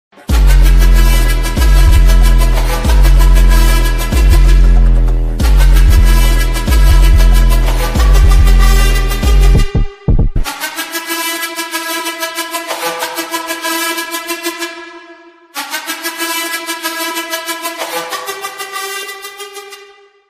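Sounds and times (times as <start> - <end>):
music: 0.1 - 20.2.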